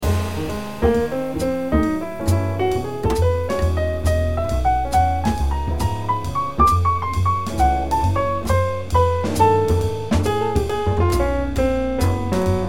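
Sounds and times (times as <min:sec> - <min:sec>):
solo piano transcription of a trio: 0:00.0 - 0:12.6.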